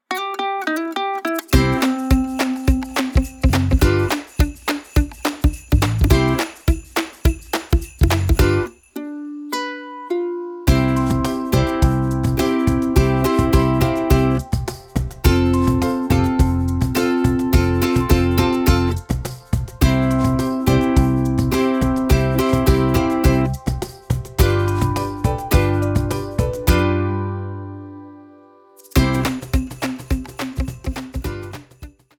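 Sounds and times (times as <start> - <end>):
instrumental music: 0.0 - 32.1.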